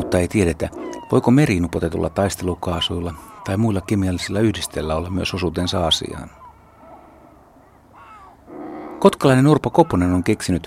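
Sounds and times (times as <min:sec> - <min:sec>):
razorbill hoarse croaking calls: 0:00.0 - 0:05.1, 0:08.0 - 0:10.6
speech: 0:00.1 - 0:06.4, 0:09.0 - 0:10.6.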